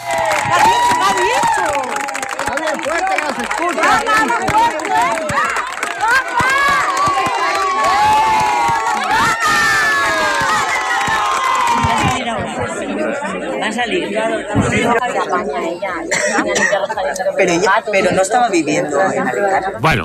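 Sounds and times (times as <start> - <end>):
crowd cheering and shouting outside courthouse: 0.0 - 16.0
speech: 13.7 - 20.0.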